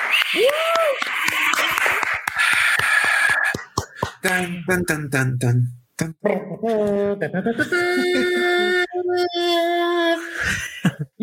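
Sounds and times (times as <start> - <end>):
applause: 0.0 - 4.4
speech: 0.3 - 1.5, 4.2 - 11.0
laughter: 0.5 - 2.8, 6.5 - 9.2, 10.2 - 11.2.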